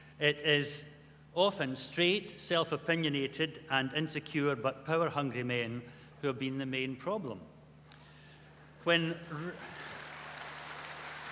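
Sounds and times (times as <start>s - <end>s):
speech: 0.2s - 7.5s, 8.8s - 9.9s
women in audience clapping: 9.4s - 11.2s.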